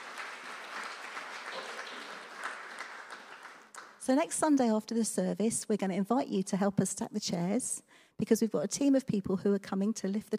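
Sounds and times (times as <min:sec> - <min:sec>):
audience applauding: 0:00.0 - 0:04.1
speech: 0:04.0 - 0:10.3.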